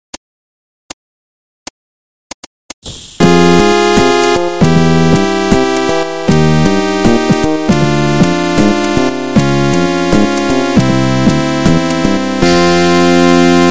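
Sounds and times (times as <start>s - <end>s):
game over jingle: 3.2s - 13.6s.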